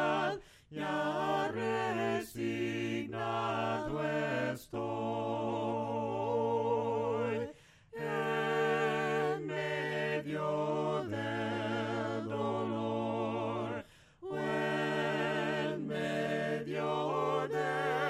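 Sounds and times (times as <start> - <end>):
a cappella hymn singing: 0.0 - 18.0.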